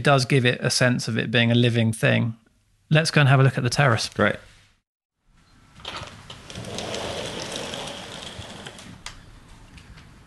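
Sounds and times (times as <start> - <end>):
speech: 0.0 - 4.5
pair of sliding doors being pulled back: 5.8 - 9.2.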